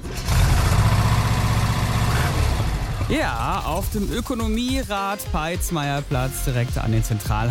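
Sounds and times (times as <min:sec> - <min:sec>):
heavy truck engines idling: 0:00.0 - 0:04.7
speech: 0:03.1 - 0:07.4.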